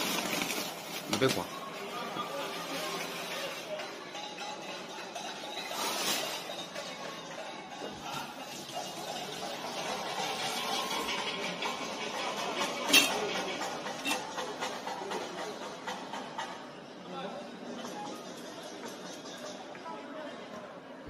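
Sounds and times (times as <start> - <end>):
murmur of many voices: 0.0 - 21.0
people banging pots and pans: 3.3 - 16.4.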